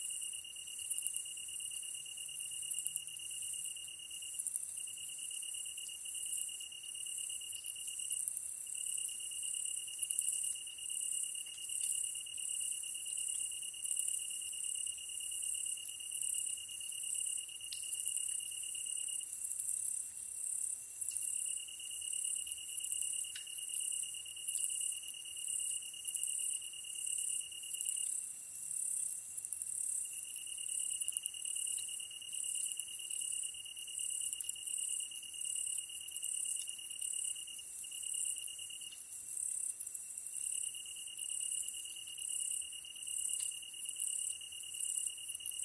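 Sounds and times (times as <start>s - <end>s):
tree cricket trill: 0.0s - 45.6s.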